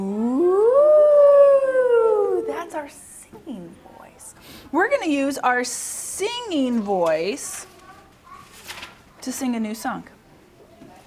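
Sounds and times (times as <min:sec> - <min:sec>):
voice imitating a fire engine siren: 0:00.0 - 0:02.8
speech: 0:02.8 - 0:07.7, 0:09.2 - 0:10.2.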